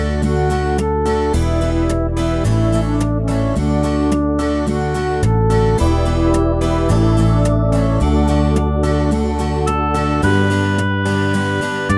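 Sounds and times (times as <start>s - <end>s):
hymn backing track: 0.2s - 11.9s.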